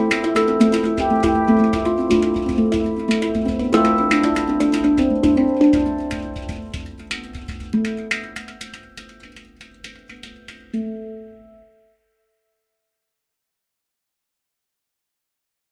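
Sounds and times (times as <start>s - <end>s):
handpan: 0.0s - 11.6s.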